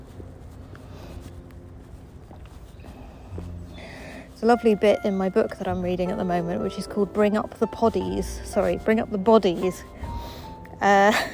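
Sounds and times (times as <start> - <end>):
child's footsteps walking along railings: 0.0 - 4.8
speech: 4.4 - 9.9, 10.8 - 11.3.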